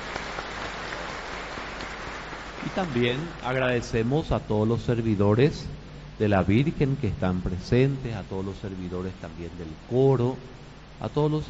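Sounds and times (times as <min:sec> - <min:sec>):
applause: 0:00.0 - 0:03.5
speech: 0:02.8 - 0:11.4.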